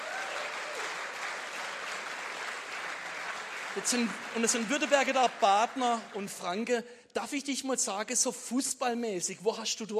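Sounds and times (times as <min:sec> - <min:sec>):
audience applause: 0:00.0 - 0:06.7
speech: 0:03.8 - 0:09.9.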